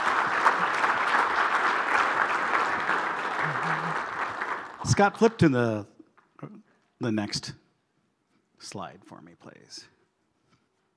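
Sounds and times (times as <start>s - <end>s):
audience applause: 0.0s - 5.4s
speech: 4.9s - 5.9s, 7.0s - 7.6s, 8.6s - 10.0s.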